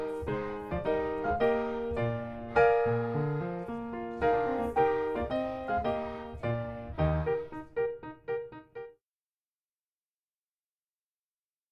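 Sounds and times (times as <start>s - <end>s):
piano: 0.0s - 9.0s.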